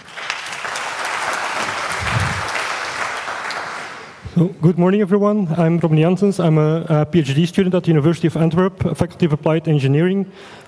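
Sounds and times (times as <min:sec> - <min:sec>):
audience applause: 0:00.0 - 0:04.2
speech: 0:04.4 - 0:10.6.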